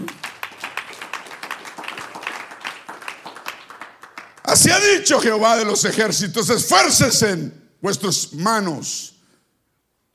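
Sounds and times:
audience applause: 0.0 - 4.8
speech: 4.5 - 9.2.

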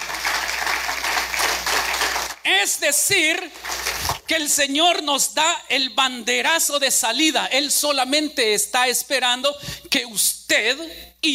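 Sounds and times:
audience clapping: 0.0 - 2.5, 3.3 - 4.3
speech: 2.6 - 11.3.

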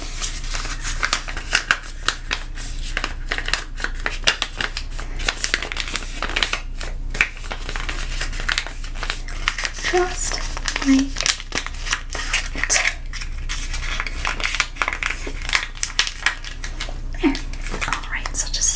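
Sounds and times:
crinkly rustling of an item being folded away: 0.0 - 18.7.

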